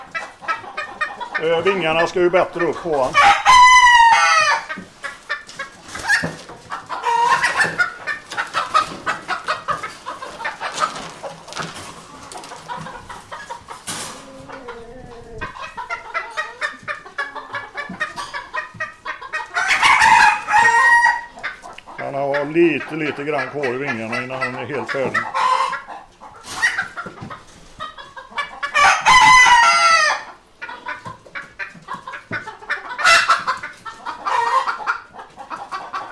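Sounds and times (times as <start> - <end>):
agitated fowl sounds: 0.0 - 36.1
rooster clucking: 0.0 - 36.1
speech: 1.4 - 3.4, 22.6 - 25.4
rooster crowing: 3.2 - 4.7, 19.6 - 21.3, 28.8 - 30.2.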